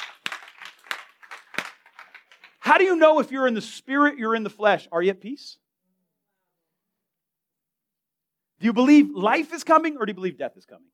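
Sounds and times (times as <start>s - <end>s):
group clapping: 0.0s - 2.8s
speech: 2.7s - 5.6s, 8.6s - 10.9s.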